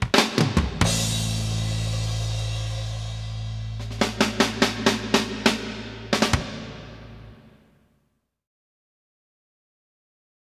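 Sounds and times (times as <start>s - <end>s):
reverb in a large hall: 0.0s - 7.8s.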